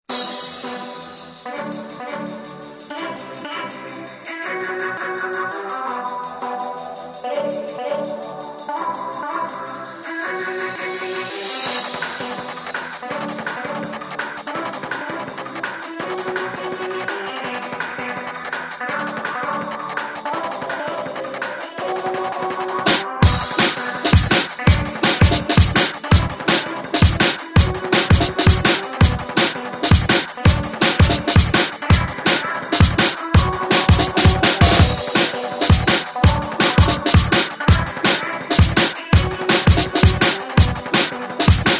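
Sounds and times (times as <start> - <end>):
drum and bass remix: 0.0 - 41.7.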